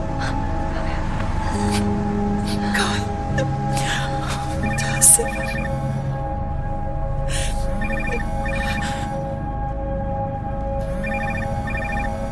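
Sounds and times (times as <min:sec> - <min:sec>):
steady droning background: 0:00.0 - 0:12.3
telephone ringing: 0:07.7 - 0:09.2, 0:10.8 - 0:12.3.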